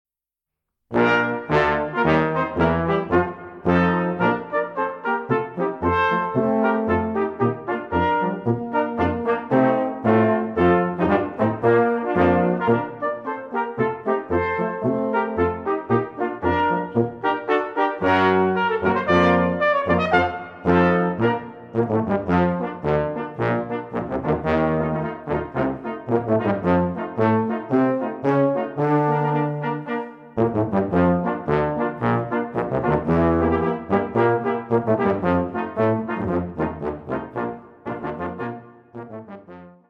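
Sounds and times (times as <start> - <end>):
march music: 0.9 - 39.8.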